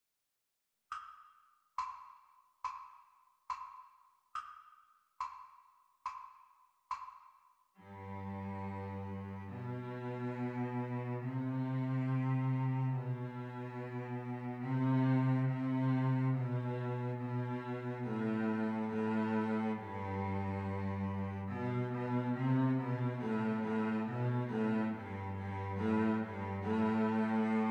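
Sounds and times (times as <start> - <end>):
cello duet: 7.8 - 27.6.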